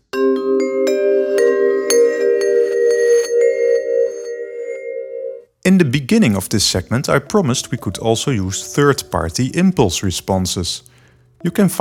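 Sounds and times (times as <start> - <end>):
bright glassy bell-like tone with reverse plate reverb: 0.9 - 5.5
speech: 5.8 - 11.7.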